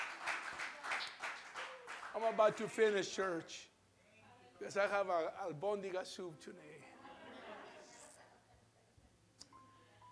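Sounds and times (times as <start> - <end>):
audience applause: 0.0 - 2.8
speech: 2.2 - 3.7, 4.6 - 6.9
laughter: 6.8 - 8.8.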